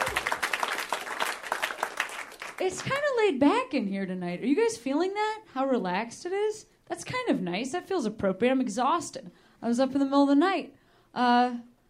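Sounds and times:
audience clapping: 0:00.0 - 0:03.0
speech: 0:02.6 - 0:11.7.

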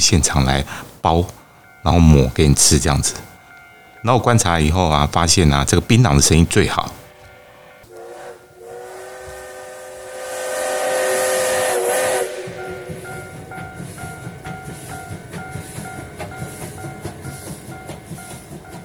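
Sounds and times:
speech: 0:00.0 - 0:03.3, 0:04.0 - 0:07.0
circle train chugging with steam and wheels: 0:00.0 - 0:18.8
circle train whistle: 0:07.0 - 0:17.8.

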